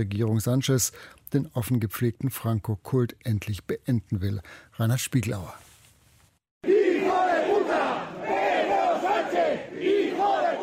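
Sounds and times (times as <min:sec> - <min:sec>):
speech: 0:00.0 - 0:05.7
crowd of protesters shouting: 0:06.6 - 0:10.6.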